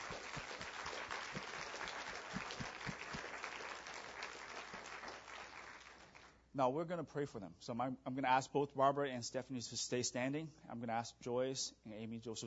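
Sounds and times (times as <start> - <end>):
audience applause for graduates: 0.0 - 6.3
speech: 6.6 - 12.4.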